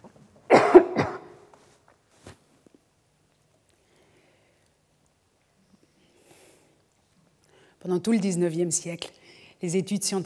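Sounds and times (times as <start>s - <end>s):
person coughing: 0.5s - 1.4s
throat clearing: 0.5s - 1.4s
speech: 7.8s - 10.2s.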